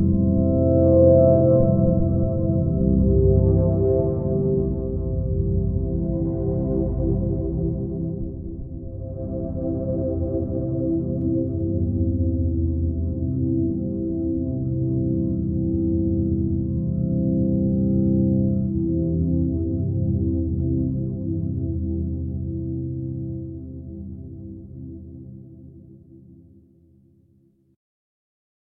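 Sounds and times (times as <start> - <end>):
ambient swelling synth pad: 0.0 - 25.4.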